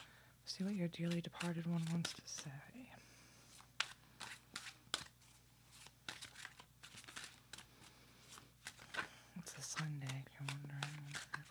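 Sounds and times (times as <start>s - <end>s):
tarot deck shuffling and rustling as a card is drawn: 0.0s - 2.6s, 3.4s - 11.4s
speech: 0.6s - 3.1s, 9.8s - 11.4s.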